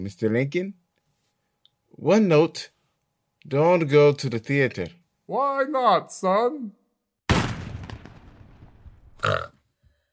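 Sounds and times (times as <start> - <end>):
speech: 0.0 - 0.8, 2.0 - 2.7, 3.4 - 6.8
gunshot in a theater: 7.3 - 9.2.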